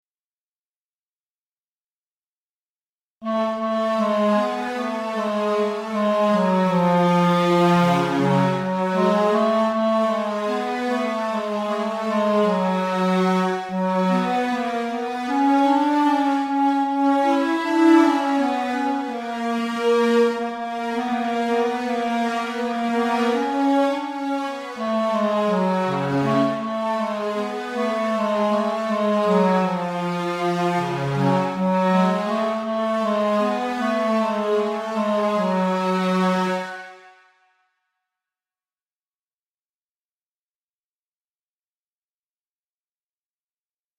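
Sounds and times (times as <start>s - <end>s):
organ: 3.2s - 36.7s.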